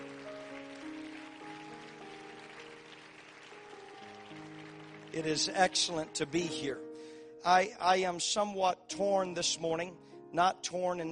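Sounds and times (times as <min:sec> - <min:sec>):
audience clapping: 0:00.0 - 0:06.6
sustained organ-like chords: 0:00.0 - 0:11.1
speech: 0:05.2 - 0:11.1.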